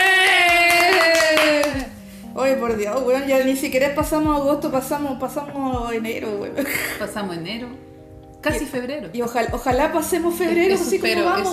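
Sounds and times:
applause: 0.0 - 2.0
speech: 2.6 - 11.5.

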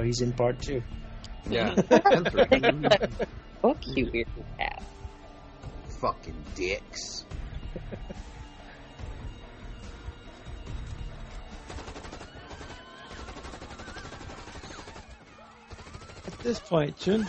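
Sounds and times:
speech: 0.0 - 5.0, 6.0 - 8.3, 16.4 - 17.2
laughter: 1.5 - 3.3, 7.6 - 8.4
sustained automatic gunfire from a heavily armored shooter on a street: 11.6 - 17.2.

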